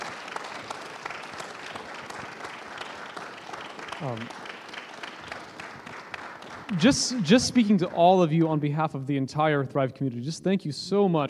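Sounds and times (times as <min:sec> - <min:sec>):
audience round of applause: 0:00.0 - 0:08.6
speech: 0:04.0 - 0:04.5, 0:06.7 - 0:11.2.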